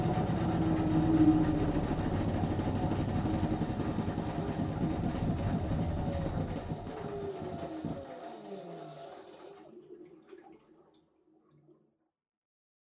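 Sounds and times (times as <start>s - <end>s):
front-loading washing machine spinning: 0.0s - 9.6s.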